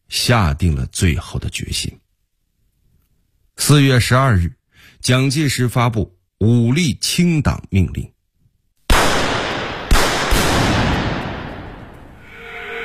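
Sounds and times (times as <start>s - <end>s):
speech: 0.2s - 2.0s, 3.6s - 8.1s
gunfire on Shanghai streets: 8.9s - 12.2s.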